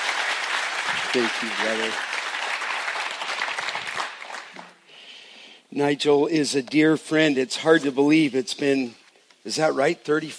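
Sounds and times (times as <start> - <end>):
audience applause welcoming a guest preacher: 0.0 - 4.8
speech: 0.9 - 2.1, 5.7 - 10.3.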